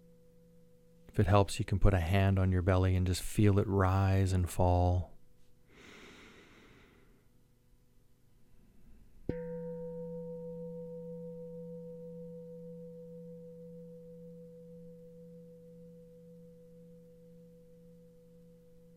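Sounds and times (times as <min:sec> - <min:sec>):
speech: 0:01.2 - 0:05.1
soft breath: 0:05.6 - 0:07.4
struck meditation bell ringing: 0:09.3 - 0:18.9.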